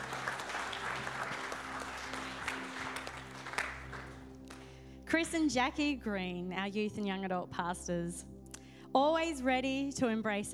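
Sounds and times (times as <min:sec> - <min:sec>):
crowd clapping: 0:00.0 - 0:04.7
speech: 0:05.1 - 0:10.5.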